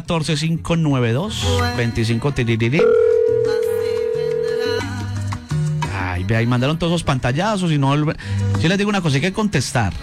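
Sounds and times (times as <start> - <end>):
speech: 0.0 - 3.6, 6.2 - 10.0
music with singing: 1.2 - 10.0
telephone ringing tone: 2.8 - 5.1.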